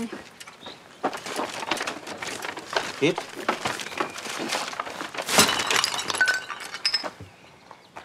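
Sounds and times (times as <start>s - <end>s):
dropped bag: 1.4s - 7.2s
speech: 3.0s - 3.4s
glass bottle shattering inside a dropped bag: 5.2s - 7.2s
glass shards tinkling: 5.3s - 7.2s.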